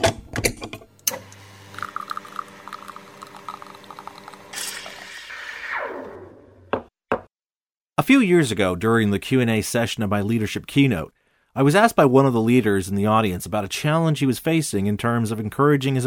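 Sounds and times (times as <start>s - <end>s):
espresso machine starting up: 1.1s - 5.4s
speech: 8.1s - 16.0s.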